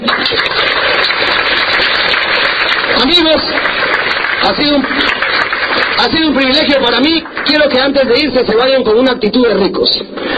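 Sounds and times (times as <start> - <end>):
audience applause: 0.0 - 8.7
speech: 4.5 - 5.1, 6.0 - 10.3.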